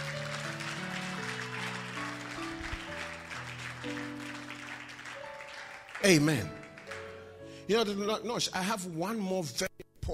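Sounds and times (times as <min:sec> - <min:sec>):
crowd clapping: 0:00.0 - 0:07.4
sustained keyboard or organ chords: 0:00.0 - 0:08.6
speech: 0:03.8 - 0:04.2, 0:06.0 - 0:06.6, 0:07.7 - 0:10.1.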